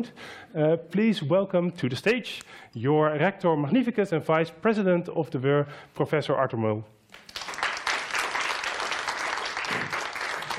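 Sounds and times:
speech: 0:00.0 - 0:07.3
audience applause: 0:07.2 - 0:10.5.

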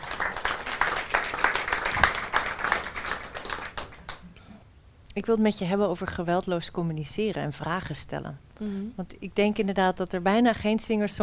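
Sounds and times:
audience applause: 0:00.0 - 0:04.2
speech: 0:05.2 - 0:11.2.

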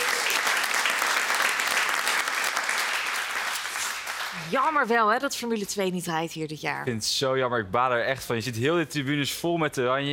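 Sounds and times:
audience applause: 0:00.0 - 0:04.8
speech: 0:04.4 - 0:10.1.

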